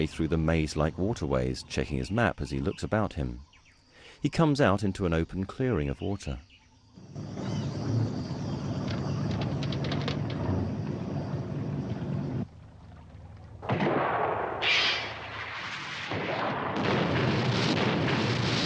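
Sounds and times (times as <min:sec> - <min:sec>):
speech: 0:00.0 - 0:03.5, 0:04.2 - 0:07.6
speedboat engine: 0:07.1 - 0:13.7
rocket exploding in front of a speedboat: 0:13.6 - 0:18.6.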